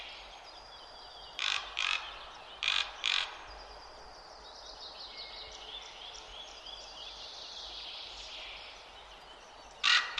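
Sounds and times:
Common raven harsh rasping calls: 0:01.4 - 0:03.4, 0:09.8 - 0:10.1.

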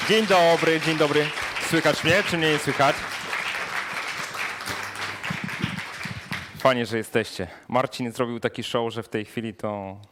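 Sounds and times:
large audience applause: 0:00.0 - 0:06.8
speech: 0:00.1 - 0:03.2, 0:06.6 - 0:10.1.

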